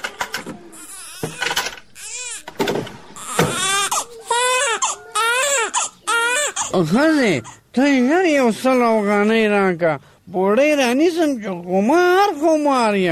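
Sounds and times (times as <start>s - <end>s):
baby crying in a room while being soothed: 0.0s - 7.6s
speech: 6.8s - 13.1s.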